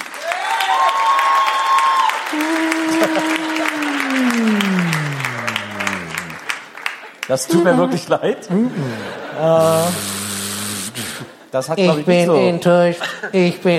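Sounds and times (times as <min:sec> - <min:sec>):
audience applause: 0:00.0 - 0:07.8
laughter: 0:02.3 - 0:06.5, 0:07.5 - 0:10.1, 0:12.8 - 0:13.7
speech: 0:03.1 - 0:03.4, 0:07.3 - 0:10.2, 0:11.6 - 0:13.7.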